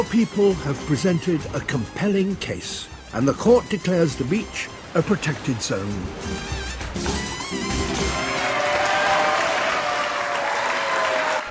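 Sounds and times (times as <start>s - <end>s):
speech: 0.0s - 7.2s
courtroom crowd applauding: 8.0s - 11.5s.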